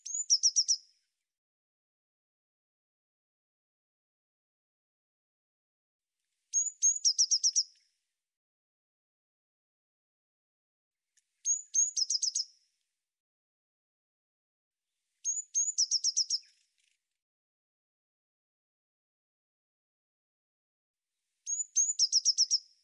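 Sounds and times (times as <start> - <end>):
Eurasian blue tit thin high whistled notes: 0.0 - 1.0, 6.5 - 7.9, 11.4 - 12.6, 15.2 - 16.7, 21.4 - 22.8.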